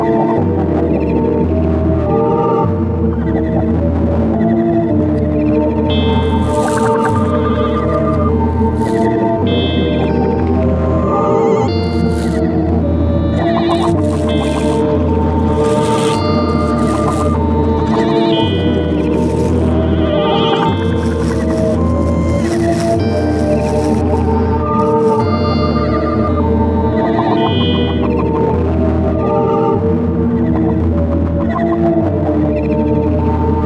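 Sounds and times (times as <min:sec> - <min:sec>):
synthesizer: 0:00.0 - 0:33.6
cricket chirping: 0:06.0 - 0:07.7, 0:11.8 - 0:12.4, 0:13.4 - 0:25.4.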